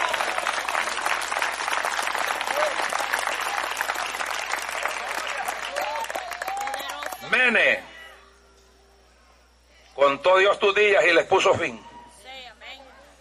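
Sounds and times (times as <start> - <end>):
audience applauding: 0.0 - 7.5
speech: 7.5 - 7.9, 10.1 - 11.8.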